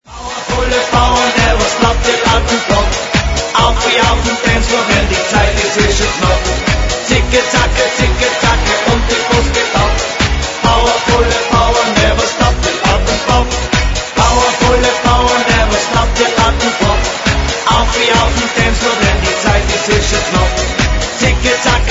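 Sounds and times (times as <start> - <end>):
Alpine polka music: 0.1 - 21.8.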